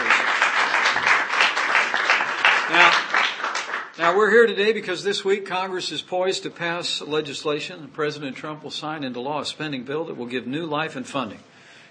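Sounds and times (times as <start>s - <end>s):
audience applause: 0.0s - 4.0s
speech: 4.0s - 11.5s.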